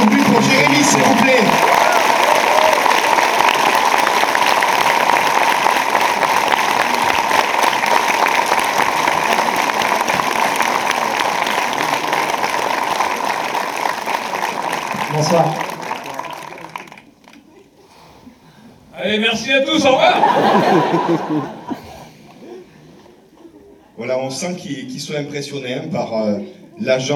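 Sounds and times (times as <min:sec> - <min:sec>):
audience applause: 0:00.0 - 0:17.5, 0:19.9 - 0:22.0
speech: 0:00.8 - 0:01.8, 0:15.3 - 0:15.6, 0:19.1 - 0:21.6, 0:24.3 - 0:27.1
laughter: 0:19.7 - 0:24.0.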